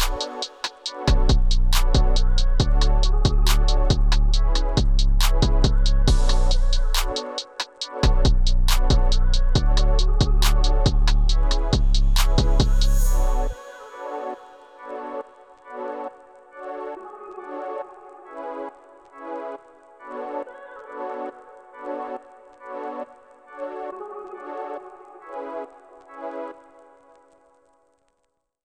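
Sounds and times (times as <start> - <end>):
chill beat: 0.0 - 14.9.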